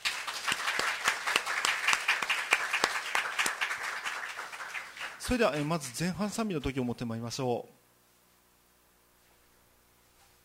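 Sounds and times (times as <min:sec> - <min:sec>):
audience applauding: 0:00.0 - 0:06.3
speech: 0:05.3 - 0:07.8.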